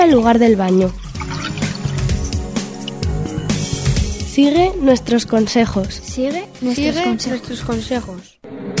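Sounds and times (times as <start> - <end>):
speech: 0.0 - 1.4, 4.4 - 8.7
water dripping from a tap: 0.0 - 3.1
low watery hum: 0.9 - 4.2.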